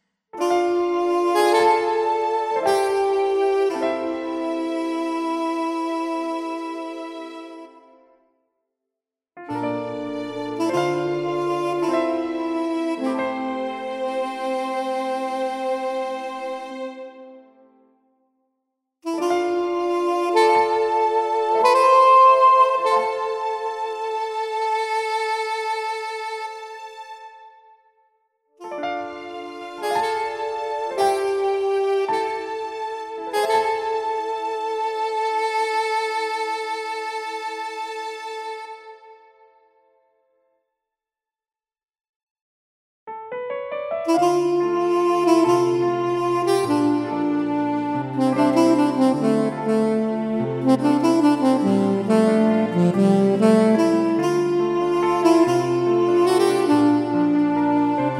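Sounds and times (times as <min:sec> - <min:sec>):
saxophone: 0:00.4 - 0:08.1, 0:09.4 - 0:17.6, 0:19.0 - 0:27.5, 0:28.6 - 0:39.4, 0:44.0 - 0:58.1.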